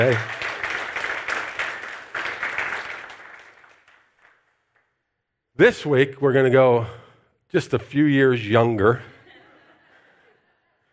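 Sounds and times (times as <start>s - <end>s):
speech: 0.0s - 0.4s, 5.6s - 9.1s
crowd applause: 0.0s - 4.4s.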